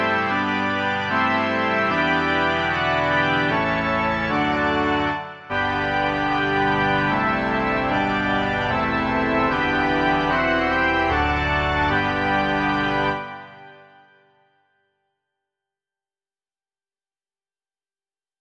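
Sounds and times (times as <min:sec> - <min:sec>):
organ: 0:00.0 - 0:14.4.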